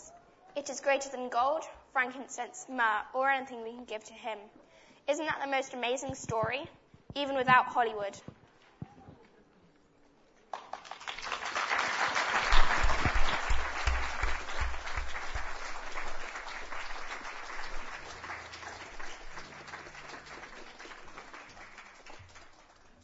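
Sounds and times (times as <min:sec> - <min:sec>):
speech: 0:00.6 - 0:08.4
audience applause: 0:10.5 - 0:23.0.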